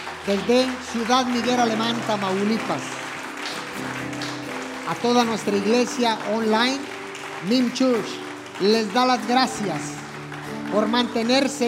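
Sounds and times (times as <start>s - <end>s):
loud applause from audience: 0.0s - 11.6s
speech: 0.2s - 3.0s, 4.9s - 10.0s, 10.7s - 11.6s.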